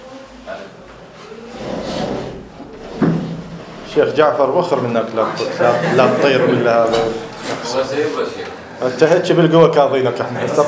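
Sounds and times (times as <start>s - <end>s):
window sliding open with a grinding scrape: 1.5s - 4.0s
speech: 4.0s - 10.6s.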